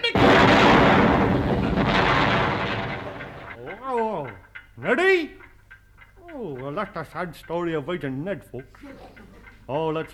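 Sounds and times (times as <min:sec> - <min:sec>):
barrel of saxophones exploding: 0:00.0 - 0:03.6
speech: 0:04.8 - 0:05.4, 0:06.8 - 0:10.1.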